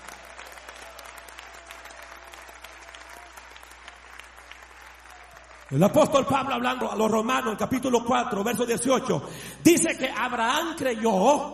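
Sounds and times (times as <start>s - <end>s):
audience applause: 0.0s - 6.8s
speech: 5.7s - 11.5s.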